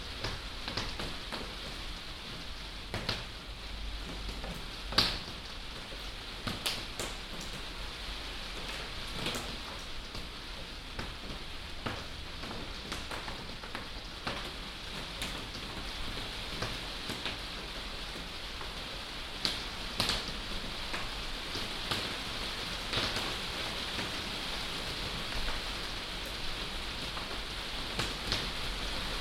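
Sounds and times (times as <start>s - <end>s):
binaural rain drips: 0.0s - 29.1s.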